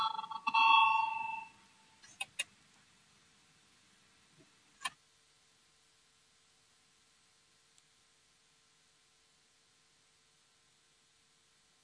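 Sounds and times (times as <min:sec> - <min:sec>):
parliamentary voting electric bell ringing: 0:00.0 - 0:01.7.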